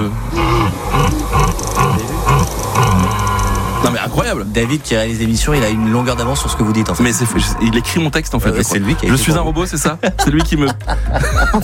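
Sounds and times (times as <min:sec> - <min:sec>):
rutting stag bellowing: 0:00.0 - 0:09.1
speech: 0:03.8 - 0:11.6
laughter: 0:08.4 - 0:11.6.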